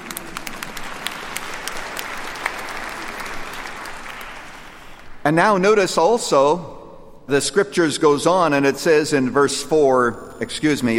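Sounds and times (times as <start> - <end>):
audience clapping: 0.0 - 5.2
speech: 5.2 - 10.9.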